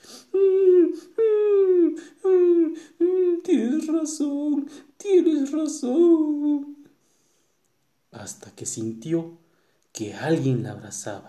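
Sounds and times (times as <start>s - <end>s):
girl crying loudly: 0.4s - 4.6s
speech: 4.1s - 6.8s, 8.2s - 9.4s, 10.0s - 11.2s.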